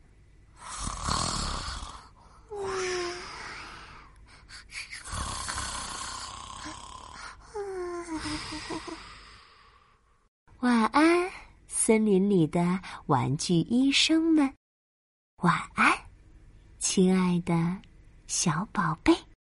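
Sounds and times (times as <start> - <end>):
snoring: 0.6 - 3.9, 5.0 - 10.0
speech: 11.9 - 14.6, 15.4 - 16.0, 17.0 - 19.2.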